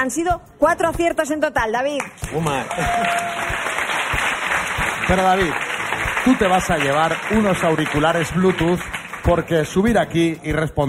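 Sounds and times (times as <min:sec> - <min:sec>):
speech: 0:00.0 - 0:03.6, 0:05.1 - 0:10.8
audience applause for a contestant on a morning radio quiz show in Valladolid: 0:02.3 - 0:09.6.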